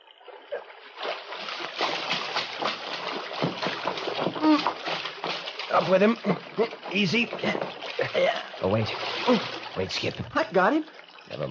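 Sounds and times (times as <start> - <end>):
water splashing in a creek: 0.0 - 11.4
speech: 5.8 - 11.4.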